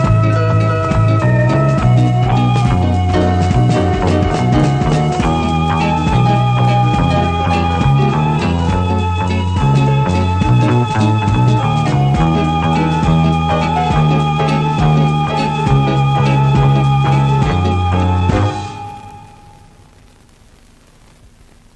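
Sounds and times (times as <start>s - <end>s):
instrumental guitar music: 0.0s - 19.7s.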